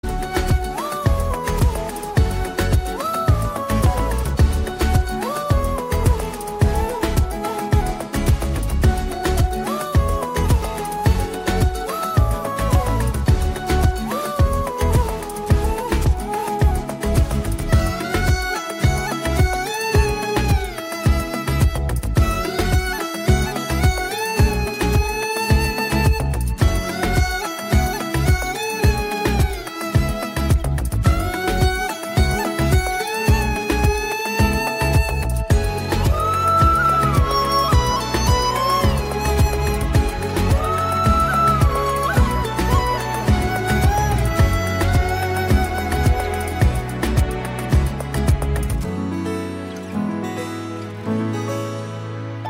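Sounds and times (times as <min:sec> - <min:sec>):
instrumental flute background music: 0:00.0 - 0:52.4.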